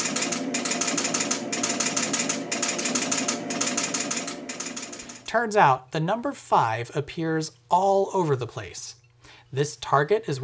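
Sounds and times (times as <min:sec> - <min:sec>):
pinball score reel ticking: 0:00.0 - 0:05.3
speech: 0:05.3 - 0:10.4.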